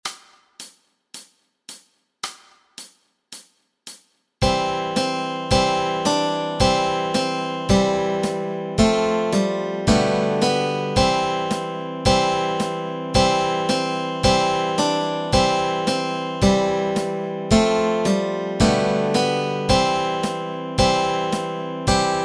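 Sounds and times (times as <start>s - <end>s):
guitar and ukulele playing melody and chords: 4.4s - 22.2s.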